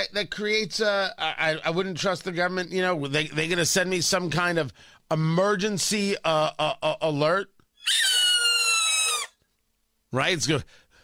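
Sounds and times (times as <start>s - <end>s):
speech: 0.0s - 8.2s, 10.1s - 10.8s
shrill squeal of a hawk attacking a chipmunk: 7.8s - 9.4s.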